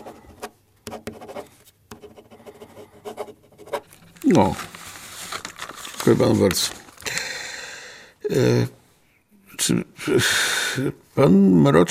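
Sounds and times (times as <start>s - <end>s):
pen handwriting in a notebook: 0.0s - 4.0s
speech: 4.3s - 4.7s, 6.0s - 6.8s, 8.3s - 8.8s, 9.6s - 11.8s.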